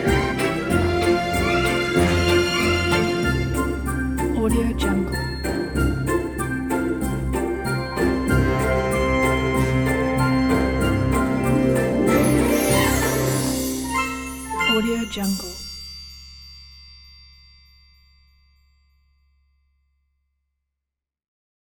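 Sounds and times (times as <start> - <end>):
Santa's sleigh ride: 0.0 - 15.9.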